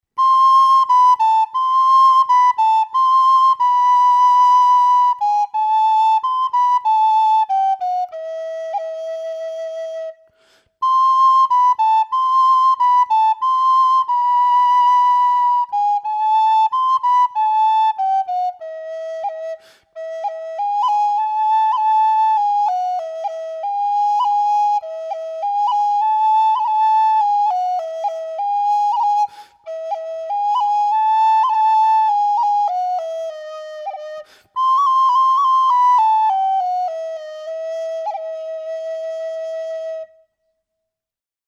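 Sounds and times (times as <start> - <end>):
traditional Galician whistle music: 0.0 - 40.5.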